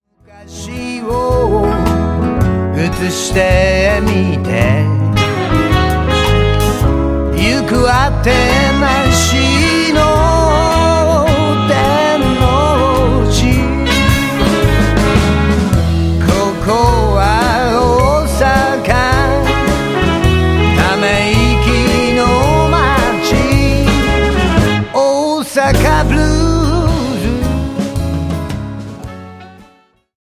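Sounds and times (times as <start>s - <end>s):
blues music: 0.1s - 30.1s.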